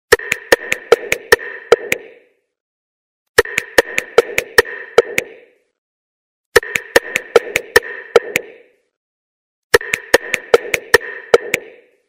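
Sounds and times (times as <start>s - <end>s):
ringtone: 0.2s - 2.3s, 3.4s - 5.6s, 6.6s - 8.7s, 9.8s - 12.0s.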